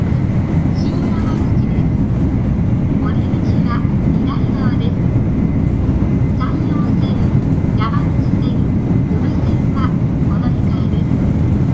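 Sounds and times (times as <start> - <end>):
Shinkansen 500 series train on Sanyo Shinkansen running: 0.0 - 11.7
soft voices: 0.8 - 1.8, 2.9 - 5.0, 6.4 - 11.2.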